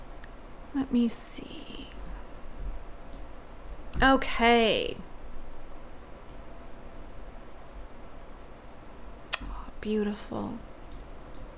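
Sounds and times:
low hum: 0.0s - 11.5s
speech: 0.7s - 1.7s, 4.0s - 5.1s, 9.8s - 10.7s
computer mouse clicks: 3.0s - 3.3s, 10.8s - 11.5s.

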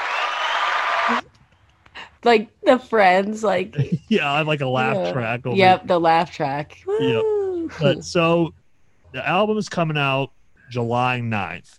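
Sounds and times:
applause sound effect from mixing board: 0.0s - 1.2s
speech: 1.1s - 1.3s, 2.2s - 11.7s
laughter: 3.6s - 5.9s, 6.9s - 8.5s, 9.2s - 10.2s.

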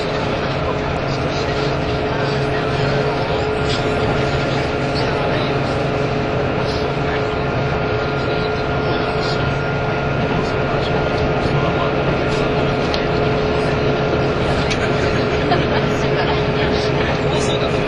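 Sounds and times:
KiHa 85 series diesel train Hida No. 1 running: 0.0s - 17.8s
constant whining tones: 0.0s - 17.8s
laughter: 10.3s - 17.8s.

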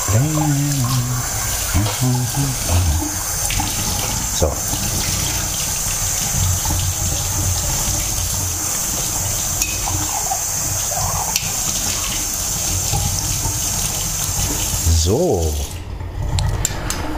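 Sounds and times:
rinsing a cup under running tap: 0.0s - 17.1s
speech: 0.1s - 3.1s, 4.4s - 4.9s, 15.0s - 15.6s.

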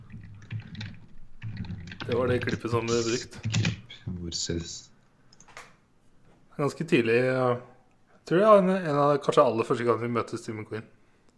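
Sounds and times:
typing on a computer keyboard during an online search: 0.0s - 4.0s
speech: 2.1s - 3.6s, 4.3s - 4.9s, 6.6s - 7.7s, 8.3s - 11.0s.

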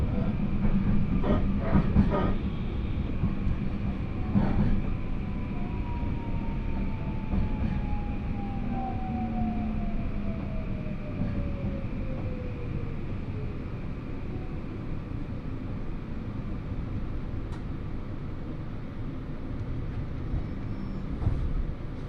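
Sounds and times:
Hōhi Main Line train carriage rumble: 0.0s - 22.0s
brief clunks and rattles: 0.6s - 2.4s, 4.2s - 4.9s, 19.6s - 22.0s.

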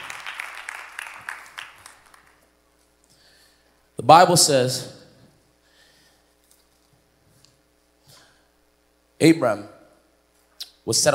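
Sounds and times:
audience clapping: 0.0s - 2.5s
speech: 4.0s - 5.0s, 9.2s - 9.8s, 10.9s - 11.1s.

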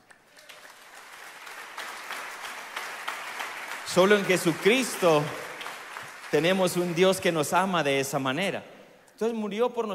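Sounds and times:
crowd applause: 0.0s - 7.4s
speech: 3.9s - 5.4s, 6.3s - 9.9s.

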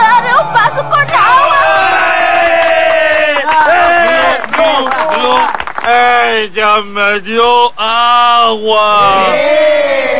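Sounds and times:
unruly crowd shouting in a courtroom: 0.0s - 5.2s, 9.0s - 10.1s
speech: 6.4s - 10.1s.

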